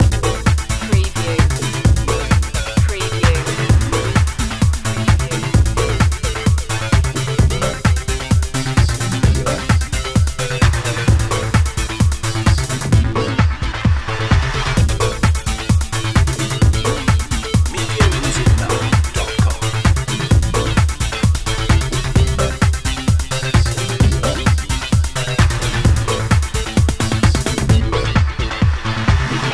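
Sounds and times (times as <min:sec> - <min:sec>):
music loop: 0:00.0 - 0:29.5.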